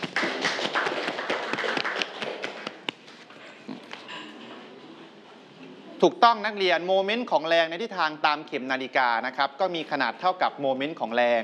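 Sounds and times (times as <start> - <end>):
classroom students clapping for a classmate: 0.0 - 3.0
speech: 6.0 - 11.4.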